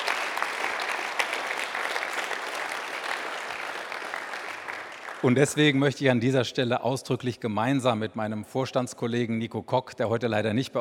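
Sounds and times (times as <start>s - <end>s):
audience applause: 0.0s - 5.8s
speech: 5.2s - 10.7s.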